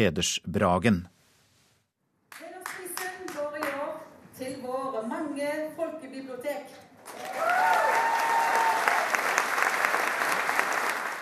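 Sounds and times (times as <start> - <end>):
speech: 0.0 - 1.1, 4.4 - 8.1
people cheering and whooping: 7.1 - 9.1
audience applause in a hall: 7.1 - 11.1.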